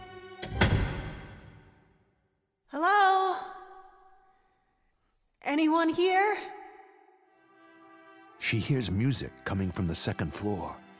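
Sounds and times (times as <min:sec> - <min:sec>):
door closing: 0:00.4 - 0:01.7
speech: 0:05.5 - 0:06.6, 0:08.5 - 0:10.8.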